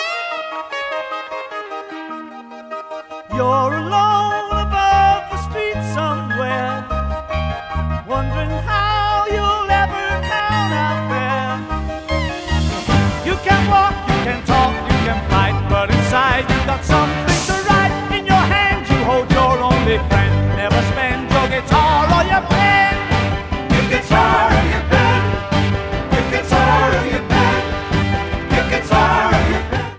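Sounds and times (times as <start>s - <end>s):
guitar and pen remix: 0.0s - 29.9s.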